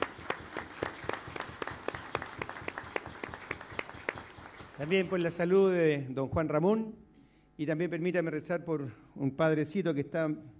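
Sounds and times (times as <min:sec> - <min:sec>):
applause: 0:00.0 - 0:05.4
speech: 0:04.8 - 0:07.0, 0:07.6 - 0:10.5.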